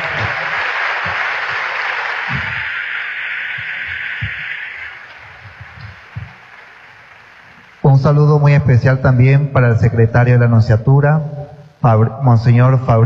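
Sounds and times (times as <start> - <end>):
audience applause: 0.0 - 7.8
speech: 8.0 - 13.0.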